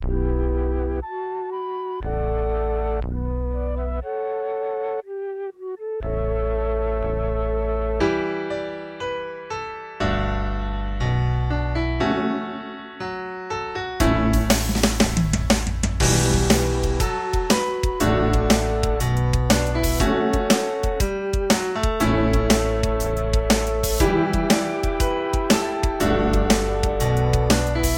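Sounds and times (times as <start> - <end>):
instrumental music: 0.0 - 27.9.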